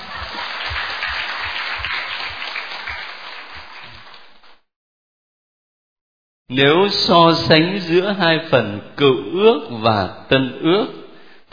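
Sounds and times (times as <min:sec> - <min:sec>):
group applauding at a Catholic Bible study session: 0:00.0 - 0:04.6
speech: 0:06.5 - 0:11.5.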